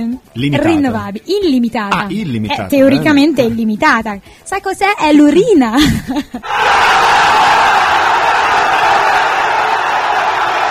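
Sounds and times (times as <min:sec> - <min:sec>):
speech: 0:00.0 - 0:07.0
studio audience roaring: 0:06.4 - 0:10.6.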